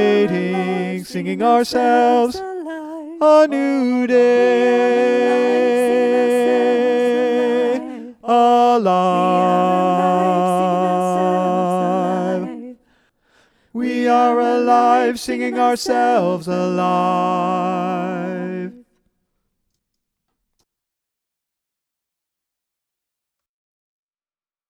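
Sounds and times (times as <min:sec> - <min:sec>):
tenor singing: 0:00.0 - 0:13.0, 0:13.7 - 0:19.0.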